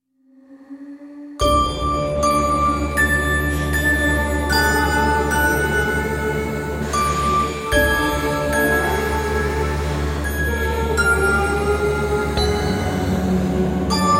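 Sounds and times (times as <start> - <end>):
creepy nursery sounds: 0.3 - 14.1.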